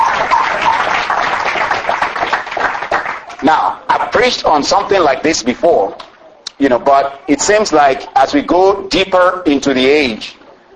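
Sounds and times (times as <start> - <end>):
audience hand clapping: 0.0 - 4.1
speech: 3.5 - 10.4.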